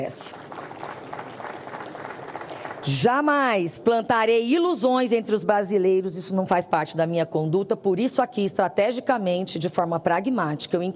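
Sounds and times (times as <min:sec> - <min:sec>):
speech: 0:00.0 - 0:00.5, 0:02.8 - 0:10.9
audience applause in the Brazilian Senate: 0:00.0 - 0:03.1.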